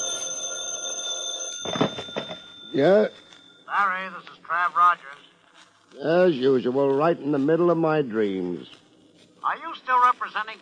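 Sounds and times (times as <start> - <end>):
telephone receiver picked up with rustling clatter: 0.0 - 3.6
telephone ringing: 0.0 - 4.0
speech: 2.8 - 5.2, 5.9 - 8.8, 9.4 - 10.6.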